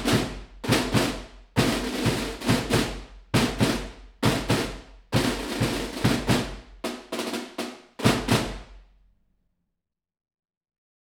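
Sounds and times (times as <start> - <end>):
drum beating: 0.0 - 8.8.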